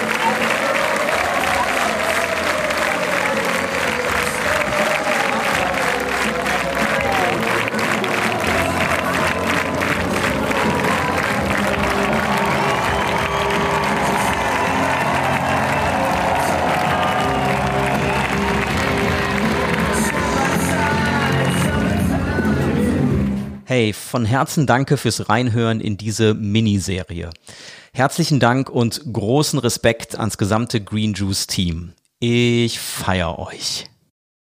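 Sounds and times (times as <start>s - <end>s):
concert audience clapping: 0.0s - 22.5s
speech: 23.8s - 33.9s.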